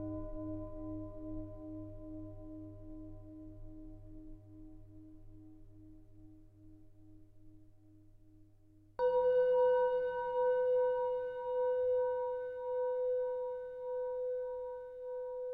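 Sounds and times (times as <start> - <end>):
Tibetan singing bowls ringing: 9.0 - 15.5.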